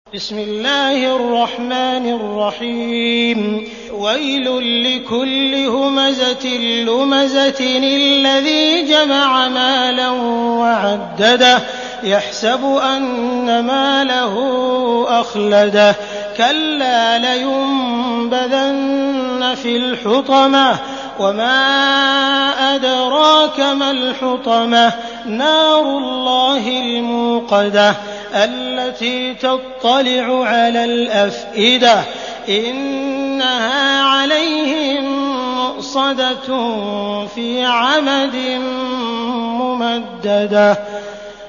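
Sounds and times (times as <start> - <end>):
Quran recitation: 0.1 - 41.4.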